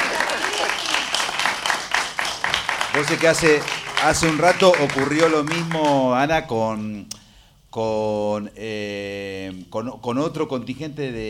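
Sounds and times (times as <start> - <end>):
studio audience applause in a radio studio: 0.0 - 6.2
speech: 3.0 - 11.2.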